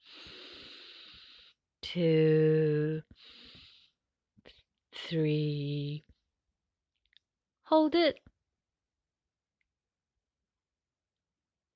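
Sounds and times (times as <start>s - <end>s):
long deep breath through the nose during a guided breathing exercise: 0.0s - 1.6s, 3.2s - 4.0s
speech: 1.9s - 3.4s, 5.1s - 6.1s, 7.7s - 8.3s.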